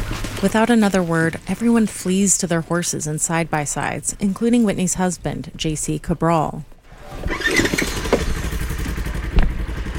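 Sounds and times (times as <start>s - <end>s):
speech: 0.4s - 7.8s
chainsaw cutting trees: 7.0s - 9.9s.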